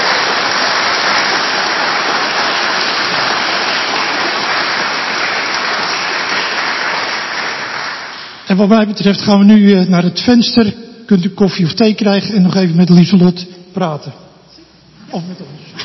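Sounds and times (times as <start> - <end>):
audience applause: 0.0 - 8.5
speech: 8.5 - 14.2, 15.1 - 15.8.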